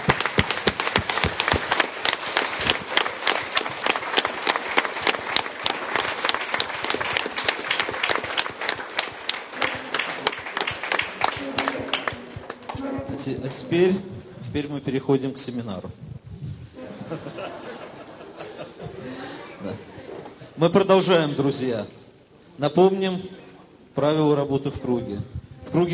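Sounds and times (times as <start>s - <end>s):
group applauding each other: 0.0s - 13.8s
speech: 13.4s - 16.0s, 17.1s - 17.7s, 20.6s - 22.0s, 22.6s - 23.4s, 24.0s - 25.9s
laughter: 16.8s - 20.5s.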